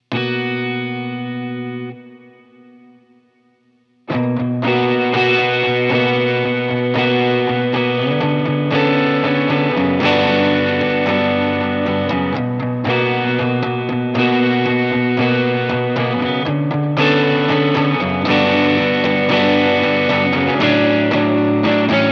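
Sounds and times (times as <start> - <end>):
guitar: 0.0 - 22.1.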